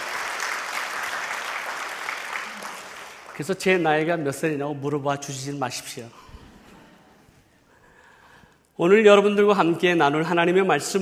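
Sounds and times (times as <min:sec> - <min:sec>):
audience applause welcoming guests: 0:00.0 - 0:03.5
speech: 0:03.4 - 0:06.2, 0:08.8 - 0:11.0.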